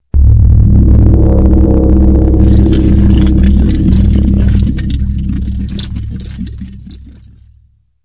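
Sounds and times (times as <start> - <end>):
musical stinger: 0.1 - 6.0.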